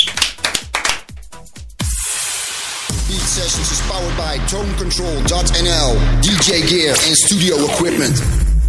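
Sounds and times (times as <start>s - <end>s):
applause: 0.0s - 1.2s
speech: 3.4s - 8.5s.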